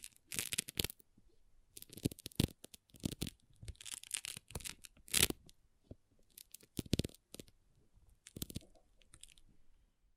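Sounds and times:
pixel art beads clicking and rattling: 0.0s - 1.0s, 1.8s - 5.4s, 6.3s - 7.5s, 8.2s - 9.4s.

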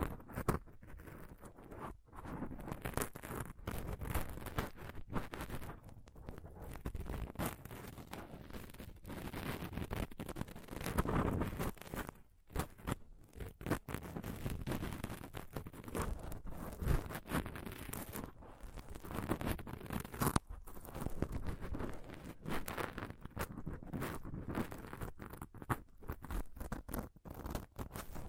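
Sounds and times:
close-up scratching and touching on a microphone: 0.0s - 28.2s.

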